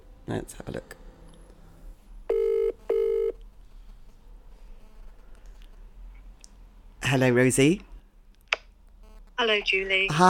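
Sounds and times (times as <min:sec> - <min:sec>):
speech: 0:00.3 - 0:01.0, 0:07.1 - 0:07.9, 0:09.4 - 0:10.2
telephone dialing tones: 0:02.3 - 0:03.4.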